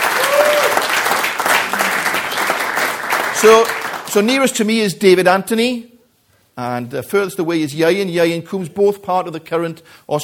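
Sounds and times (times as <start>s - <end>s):
conference audience applause welcoming two wheelchair rugby players: 0.0s - 4.3s
speech: 3.4s - 5.9s, 6.6s - 10.2s.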